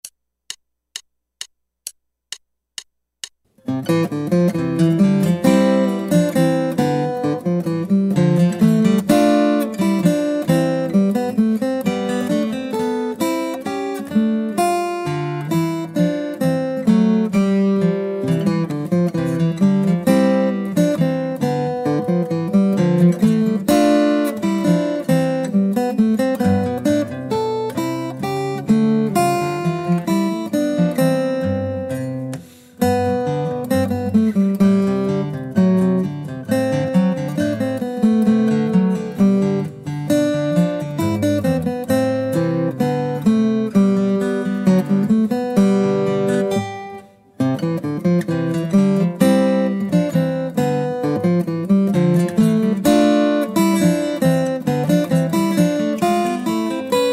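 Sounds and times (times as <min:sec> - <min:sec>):
guitar: 0:03.5 - 0:57.1.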